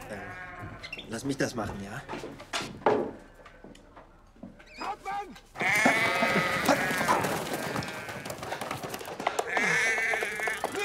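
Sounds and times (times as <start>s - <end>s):
sheep bleating: 0.0s - 0.9s, 5.6s - 8.4s, 9.4s - 10.8s
speech: 0.1s - 3.0s.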